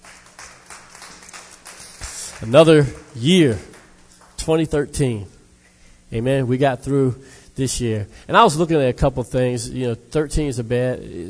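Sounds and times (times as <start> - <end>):
crowd clapping: 0.0 - 4.5
speech: 2.4 - 3.7, 4.4 - 5.4, 6.1 - 11.2.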